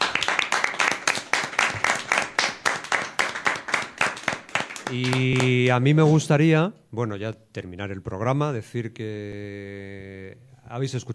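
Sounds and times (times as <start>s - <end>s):
audience applause: 0.0s - 5.7s
speech: 4.9s - 11.1s.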